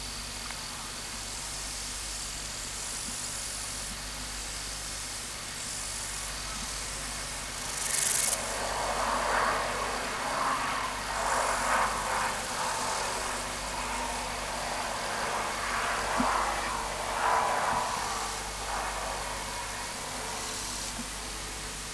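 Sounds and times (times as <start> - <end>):
Omocestus panteli grasshopper stridulation: 4.6 - 21.9.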